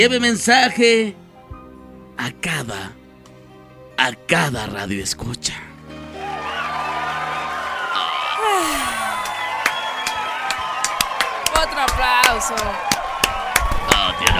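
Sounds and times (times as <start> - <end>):
speech: 0.0 - 1.2, 2.2 - 3.0, 4.0 - 5.7, 12.3 - 12.9, 14.1 - 14.3
applause sound effect: 6.5 - 14.3.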